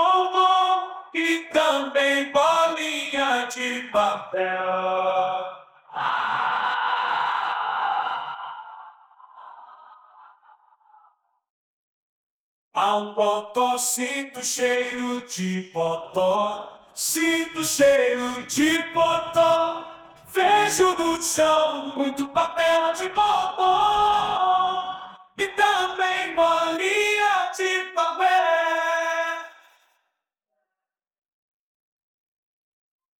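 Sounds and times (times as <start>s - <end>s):
person singing: 0.0s - 7.4s, 12.8s - 29.6s.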